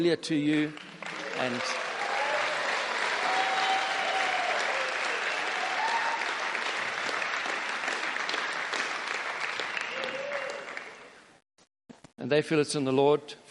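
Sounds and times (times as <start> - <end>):
speech: 0.0 - 1.9, 12.3 - 13.4
church congregation clapping: 0.5 - 11.2.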